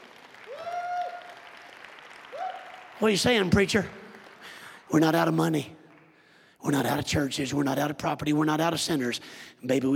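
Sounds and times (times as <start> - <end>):
church congregation clapping during a sermon: 0.0 - 6.4
speech: 3.0 - 4.0, 4.9 - 5.8, 6.6 - 9.9.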